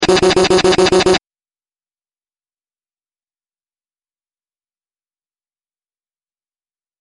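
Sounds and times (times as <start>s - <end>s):
twisted machine: 0.0s - 1.2s.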